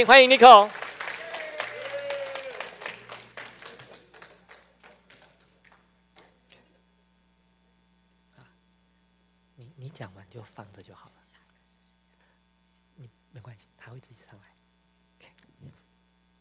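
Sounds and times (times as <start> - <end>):
speech: 0.0 - 0.8, 10.4 - 11.3, 13.0 - 14.6
crowd applause: 0.0 - 5.9
steady low electrical hum: 0.0 - 16.3.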